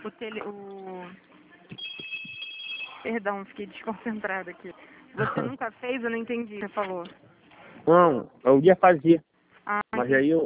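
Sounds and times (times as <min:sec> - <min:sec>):
speech: 0:00.0 - 0:01.8, 0:03.0 - 0:07.2, 0:07.9 - 0:10.4
telephone ringing: 0:01.8 - 0:03.2.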